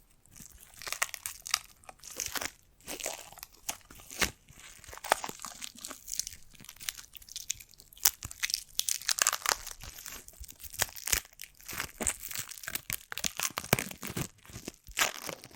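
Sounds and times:
foamy sticky massage squishing and popping: 0.0s - 15.3s.

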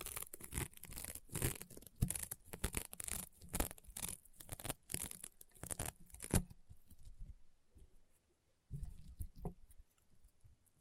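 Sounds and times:
rainbow honeycomb slime crunching and popping: 0.0s - 6.5s.

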